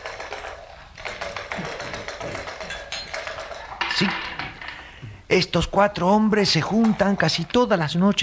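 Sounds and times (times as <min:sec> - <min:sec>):
dice being rolled on a table: 0:00.0 - 0:04.6
speech: 0:04.0 - 0:04.3, 0:05.3 - 0:08.2.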